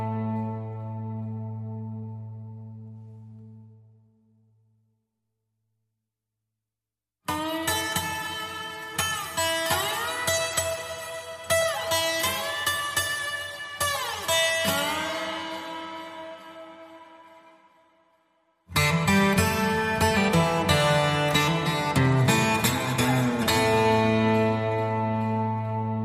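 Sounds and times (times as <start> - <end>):
guitar playing in A minor: 0.0 - 4.0, 7.3 - 17.8, 18.7 - 26.0.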